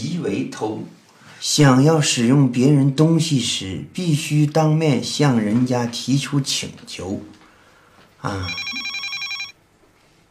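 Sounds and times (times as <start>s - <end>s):
speech: 0.2s - 7.4s, 8.2s - 8.9s
telephone ringing with electronic trill: 8.3s - 9.6s.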